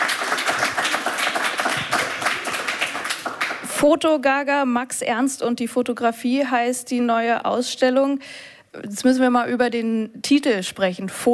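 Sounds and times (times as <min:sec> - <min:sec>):
audience applause: 0:00.0 - 0:03.7
speech: 0:03.8 - 0:11.3.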